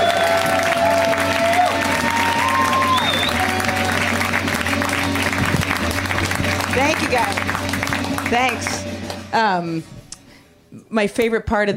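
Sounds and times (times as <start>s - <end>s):
audience applause and cheering for a comedian: 0.0s - 9.3s
speech: 8.3s - 10.0s, 10.9s - 11.7s.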